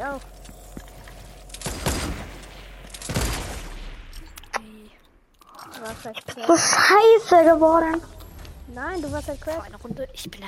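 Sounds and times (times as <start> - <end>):
speech: 0.0 - 0.4, 6.0 - 8.1, 8.7 - 10.4
rattling video game gameplay noise: 0.0 - 10.4
sniper rifle shots in a video game: 1.5 - 4.2.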